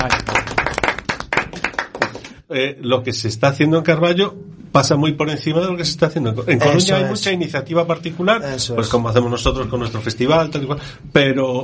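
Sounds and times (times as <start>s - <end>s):
speech: 0.0s - 0.4s, 2.5s - 11.6s
audience clapping for a performer: 0.0s - 2.4s.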